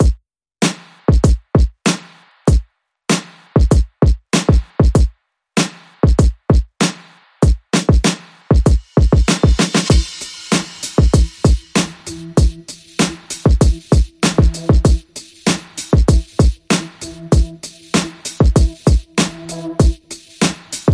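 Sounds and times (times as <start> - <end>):
drums: 0.0 - 20.9
synth pulses: 11.2 - 20.4.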